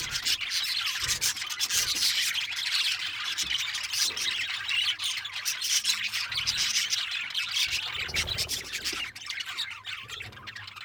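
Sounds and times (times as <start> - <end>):
parakeets squawking in harsh chatter: 0.0 - 10.8.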